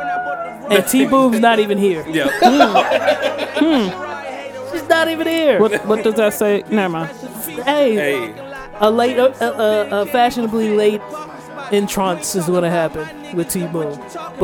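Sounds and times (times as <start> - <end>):
people talking over one another: 0.0 - 14.4
speech: 0.7 - 4.0, 4.7 - 14.4
people snickering and chuckling: 2.2 - 4.2, 5.6 - 6.3.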